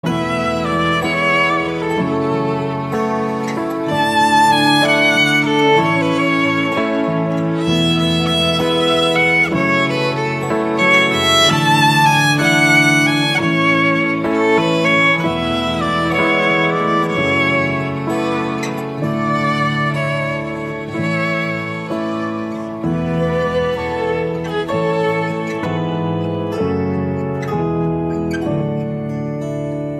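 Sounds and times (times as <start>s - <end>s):
violin: 0.0s - 29.9s.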